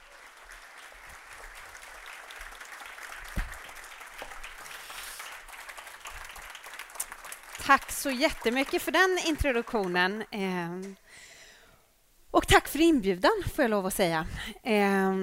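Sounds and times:
warm audience applause: 0.0 - 10.2
speech: 7.7 - 11.3, 12.4 - 15.2.

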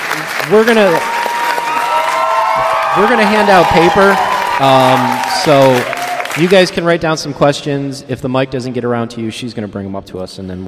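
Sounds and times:
audience applause greeting a guest at a gathering: 0.0 - 6.8
speech: 0.5 - 1.1, 2.6 - 10.6.

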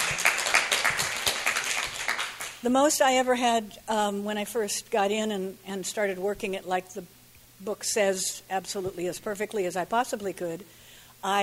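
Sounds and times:
audience clapping: 0.0 - 2.6
speech: 2.6 - 11.4.

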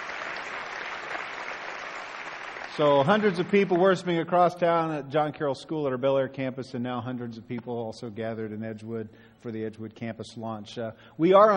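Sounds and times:
audience applause: 0.0 - 4.1
speech: 2.8 - 11.5.

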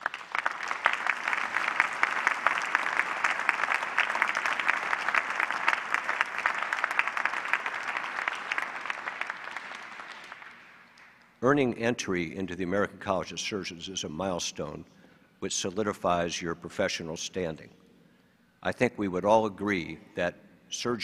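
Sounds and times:
audience applause: 0.0 - 11.2
speech: 11.4 - 17.8, 18.6 - 21.0.

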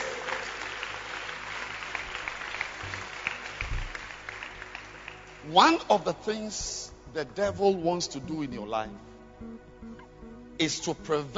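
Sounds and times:
audience clapping hands: 0.0 - 5.8
speech: 5.5 - 9.5, 10.6 - 11.3.

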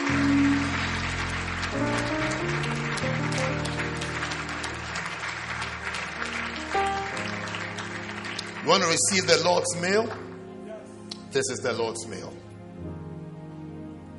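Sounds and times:
audience applauding: 0.0 - 10.5
speech: 8.7 - 10.2, 11.4 - 12.4.

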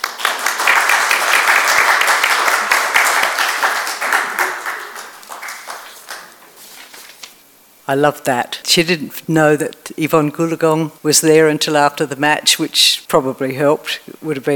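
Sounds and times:
audience applause: 0.0 - 6.4
speech: 7.9 - 14.5.

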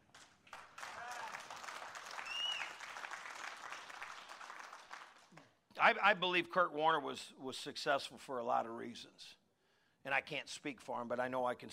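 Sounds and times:
golf clap, quiet applause: 0.0 - 5.6
speech: 5.8 - 9.4, 10.0 - 11.7.

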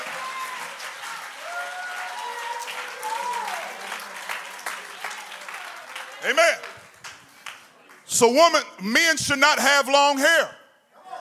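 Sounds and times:
audience clapping hands: 0.0 - 8.4
speech: 6.2 - 6.8, 8.2 - 10.6.

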